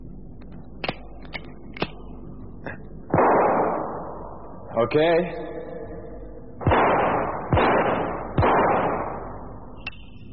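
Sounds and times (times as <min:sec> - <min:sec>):
gunshots fired at a target: 0:03.1 - 0:04.5, 0:06.6 - 0:09.6
speech: 0:04.8 - 0:05.6.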